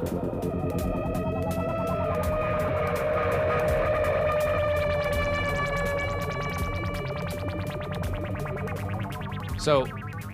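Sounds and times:
synthesizer arpeggiator: 0:00.0 - 0:10.3
speech: 0:09.6 - 0:10.0.

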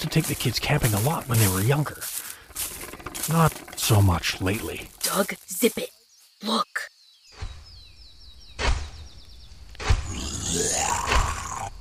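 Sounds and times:
speech: 0:00.1 - 0:02.2, 0:03.3 - 0:06.9, 0:10.5 - 0:11.2
sharp thumping hits: 0:08.5 - 0:09.1, 0:09.8 - 0:10.2
monstrous orc roaring: 0:10.1 - 0:11.7.

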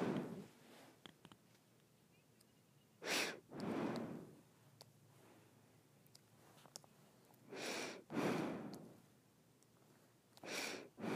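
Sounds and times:
nose breathing: 0:00.0 - 0:01.0, 0:03.0 - 0:04.4, 0:07.4 - 0:09.1, 0:10.4 - 0:11.1.

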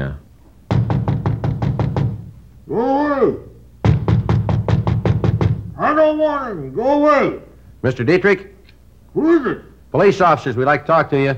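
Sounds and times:
knocking on a door: 0:00.7 - 0:02.3, 0:03.8 - 0:05.8
speech: 0:02.7 - 0:03.5, 0:06.0 - 0:08.5, 0:09.2 - 0:11.3.

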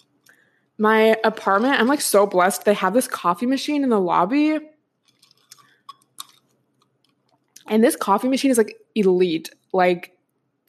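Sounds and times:
speech: 0:00.8 - 0:04.7, 0:07.7 - 0:10.2
person sipping an iced latte with almond milk: 0:05.0 - 0:07.6.

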